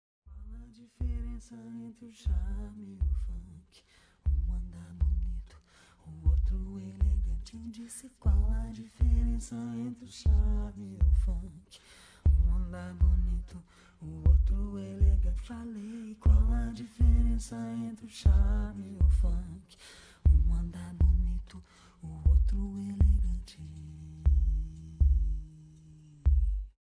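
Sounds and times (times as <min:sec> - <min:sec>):
rap music: 0:00.4 - 0:26.8.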